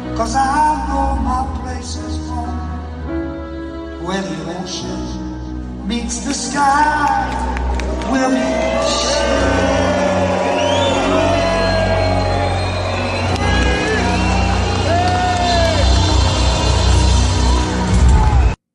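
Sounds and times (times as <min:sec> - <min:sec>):
speech: 0:00.2 - 0:02.4, 0:04.1 - 0:09.8
large crowd booing at a live event: 0:07.3 - 0:18.6.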